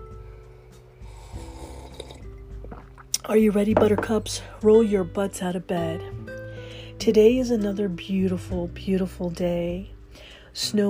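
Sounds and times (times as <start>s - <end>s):
sipping coffee: 1.0s - 4.3s
speech: 3.3s - 6.2s, 7.0s - 10.8s.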